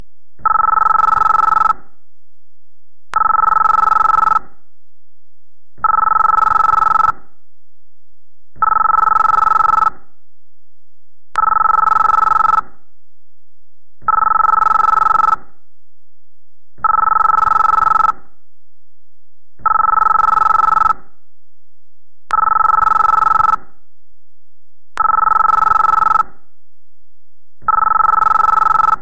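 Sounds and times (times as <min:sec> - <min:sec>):
ringtone: 0:00.4 - 0:01.8, 0:03.2 - 0:04.5, 0:05.8 - 0:07.2, 0:08.6 - 0:10.0, 0:11.4 - 0:12.7, 0:14.0 - 0:15.4, 0:16.8 - 0:18.2, 0:19.6 - 0:21.1, 0:22.3 - 0:23.7, 0:25.0 - 0:26.4, 0:27.6 - 0:29.0.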